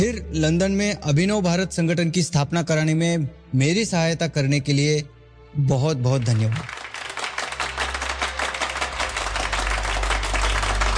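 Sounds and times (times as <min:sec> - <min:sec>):
speech: 0:00.0 - 0:06.8
audience applause: 0:06.4 - 0:10.9.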